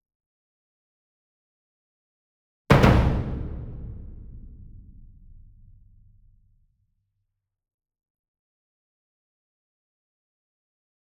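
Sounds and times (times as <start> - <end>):
single 66 inch drum hit with double hard beater: 2.7 - 6.4.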